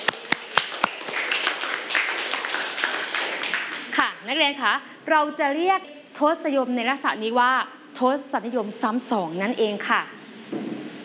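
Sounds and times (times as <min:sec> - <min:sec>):
classroom clapping: 0:00.0 - 0:04.1
speech: 0:04.3 - 0:10.2.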